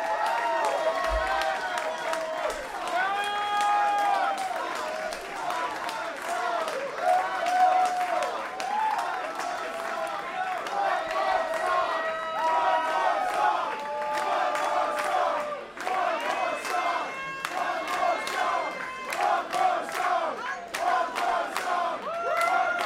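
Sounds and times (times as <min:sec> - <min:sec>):
concert audience cheering and shouting: 0:00.0 - 0:22.8
concert crowd chanting: 0:04.0 - 0:22.1.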